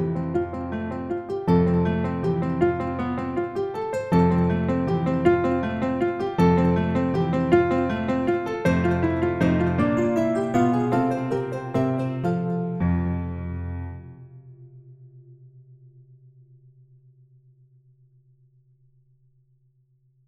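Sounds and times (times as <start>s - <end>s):
relaxing waltz music for elevators: 0.0s - 14.0s.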